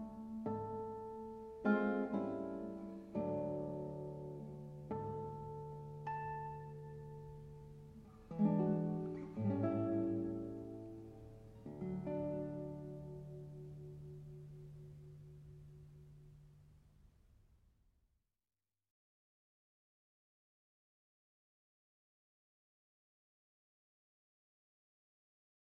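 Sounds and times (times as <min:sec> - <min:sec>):
guitar: 0:00.0 - 0:17.1.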